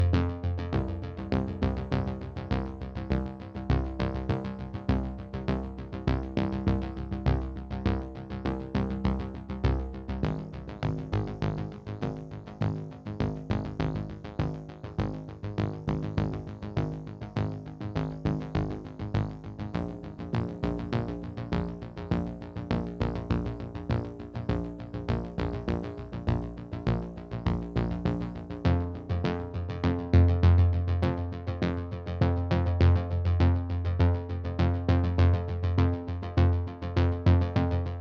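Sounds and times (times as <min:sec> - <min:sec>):
tension bass: 0:00.0 - 0:37.9.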